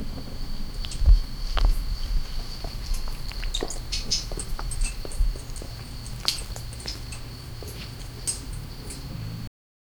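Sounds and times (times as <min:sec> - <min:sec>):
paws tapping softly on cobblestone: 0:00.4 - 0:09.5.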